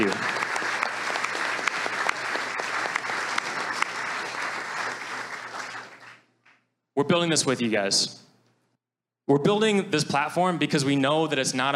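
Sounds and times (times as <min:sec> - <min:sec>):
audience applause: 0:00.0 - 0:06.3
speech: 0:07.0 - 0:08.2, 0:09.3 - 0:11.7.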